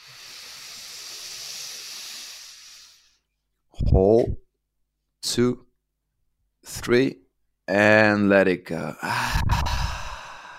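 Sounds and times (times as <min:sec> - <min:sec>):
deep breath in through the nose: 0:00.0 - 0:03.3, 0:09.1 - 0:10.5
speech: 0:03.8 - 0:04.4, 0:05.3 - 0:05.6, 0:06.7 - 0:09.8.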